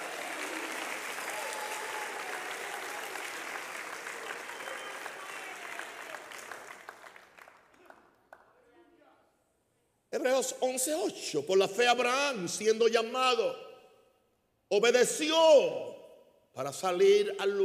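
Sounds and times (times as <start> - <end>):
loud applause: 0.0 - 8.5
speech: 10.2 - 13.6, 14.7 - 15.9, 16.6 - 17.6.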